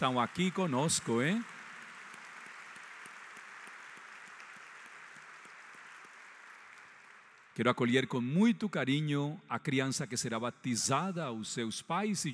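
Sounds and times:
speech: 0:00.0 - 0:01.6, 0:07.6 - 0:12.3
applause: 0:00.0 - 0:08.6.

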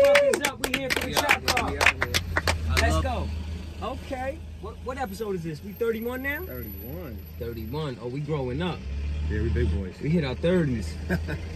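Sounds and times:
hand claps from a few people: 0:00.0 - 0:03.0
lively overlapping male voices talking and calling out: 0:00.0 - 0:11.5
speech: 0:05.0 - 0:11.5.

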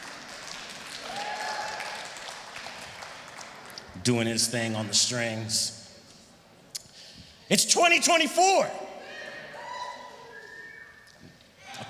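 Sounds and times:
audience clapping hands: 0:00.0 - 0:04.0
speech: 0:04.0 - 0:05.8, 0:07.5 - 0:08.9.

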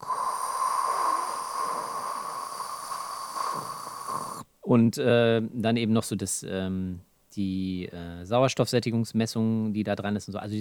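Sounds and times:
voice imitating a baby's breathing tube hiss: 0:00.0 - 0:04.5
speech: 0:04.7 - 0:10.5.

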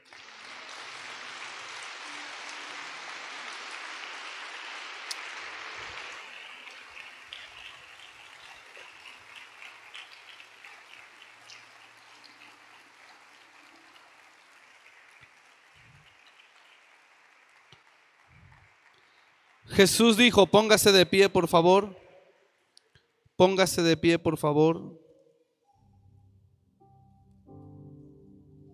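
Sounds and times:
audience applauding: 0:00.0 - 0:22.8
speech: 0:19.7 - 0:22.0, 0:23.4 - 0:25.0.

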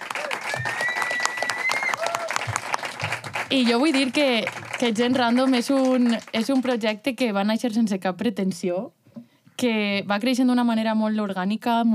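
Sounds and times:
audience applause: 0:00.0 - 0:06.8
speech: 0:03.5 - 0:09.0, 0:09.6 - 0:11.9.

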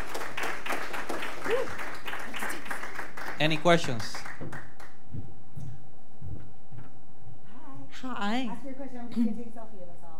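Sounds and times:
audience applause: 0:00.0 - 0:05.0
speech: 0:03.4 - 0:04.2, 0:08.2 - 0:10.0.

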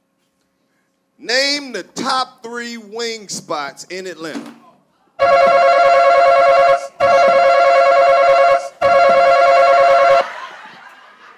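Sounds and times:
speech: 0:01.2 - 0:04.6
buzzer going off: 0:05.2 - 0:10.3
laughter: 0:10.1 - 0:11.3.

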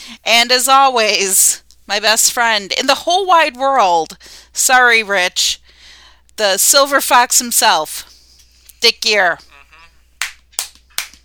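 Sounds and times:
speech: 0:00.1 - 0:05.7, 0:06.4 - 0:08.2, 0:08.8 - 0:09.5
hands clapping: 0:10.2 - 0:11.2.

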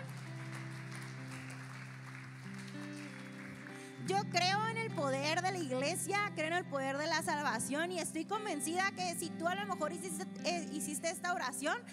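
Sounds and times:
crowd applause: 0:00.0 - 0:04.0
speech: 0:04.2 - 0:11.9.

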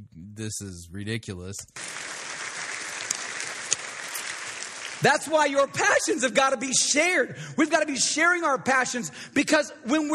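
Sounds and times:
speech: 0:00.4 - 0:02.2, 0:05.0 - 0:10.1
audience applauding: 0:01.8 - 0:05.9.

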